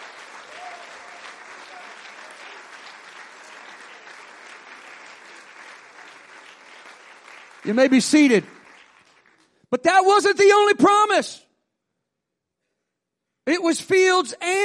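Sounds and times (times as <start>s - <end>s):
audience clapping hands: 0.0s - 9.7s
speech: 7.6s - 8.6s, 9.8s - 11.5s, 13.5s - 14.6s.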